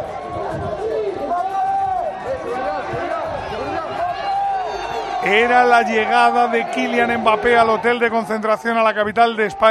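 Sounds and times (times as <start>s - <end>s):
crowd of fans shouting: 0.0s - 9.6s
speech: 5.2s - 9.6s.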